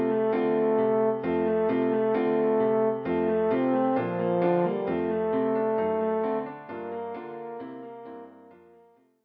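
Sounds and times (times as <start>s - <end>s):
horn playing a Christmas song: 0.0s - 8.1s.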